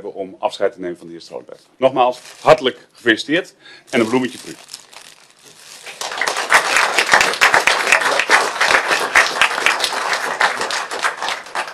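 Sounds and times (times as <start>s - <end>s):
speech: 0.0s - 4.8s
people clapping at a farewell meeting: 5.8s - 11.7s.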